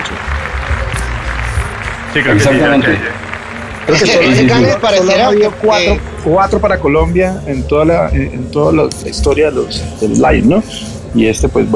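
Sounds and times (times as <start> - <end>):
audience applause: 0.0 - 7.1
speech: 2.1 - 3.2, 3.9 - 11.7.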